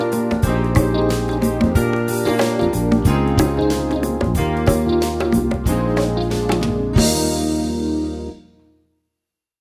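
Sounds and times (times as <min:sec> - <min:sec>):
concert percussion in E flat: 0:00.0 - 0:08.3.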